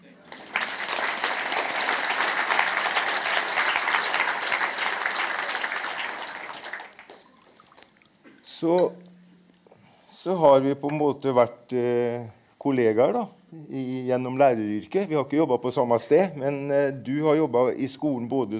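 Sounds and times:
small round of applause: 0.2s - 8.0s
speech: 8.6s - 9.0s, 10.2s - 18.5s.

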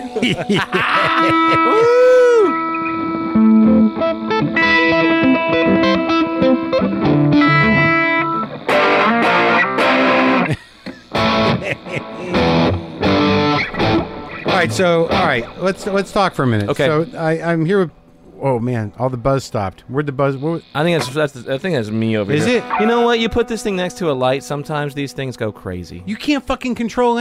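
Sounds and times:
laughter: 0.0s - 2.3s, 10.4s - 13.0s
electric guitars playing licks: 0.0s - 17.8s, 18.8s - 26.1s
speech: 0.2s - 2.1s, 14.6s - 27.1s.

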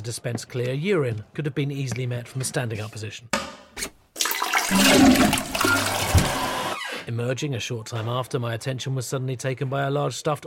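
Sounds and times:
speech: 0.0s - 3.9s, 7.1s - 10.4s
toilet flushing: 4.2s - 6.8s.

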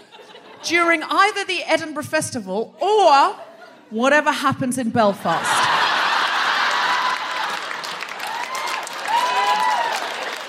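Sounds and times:
laughter: 0.0s - 0.8s, 5.2s - 8.0s
speech: 0.6s - 5.6s
crowd applause: 5.6s - 10.4s
high whooping cheers: 6.5s - 10.4s.

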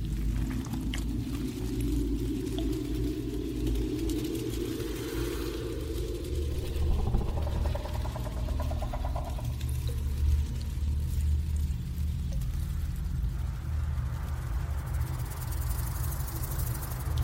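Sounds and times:
alien hive ambience deep rumble: 0.0s - 17.2s
low droning tones: 0.0s - 17.2s.

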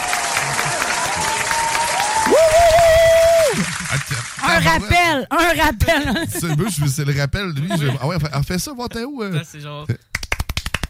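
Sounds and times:
applause sound effect: 0.0s - 4.9s
speech: 4.6s - 10.1s
laughter: 5.9s - 8.4s.

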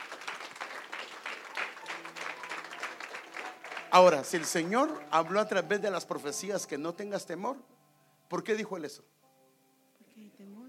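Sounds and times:
audience applause: 0.0s - 6.4s
speech: 3.9s - 7.7s, 8.3s - 9.2s, 10.2s - 10.6s.

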